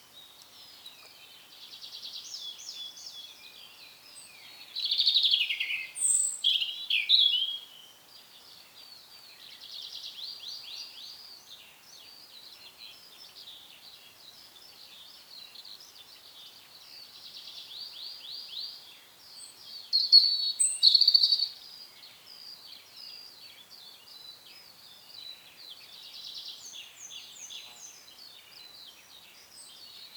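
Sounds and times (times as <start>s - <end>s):
European robin song: 0.0s - 30.1s.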